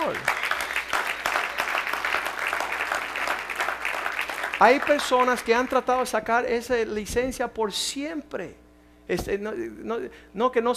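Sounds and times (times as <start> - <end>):
cheers: 0.0 - 4.6
audience applause: 0.0 - 5.9
speech: 4.6 - 10.7.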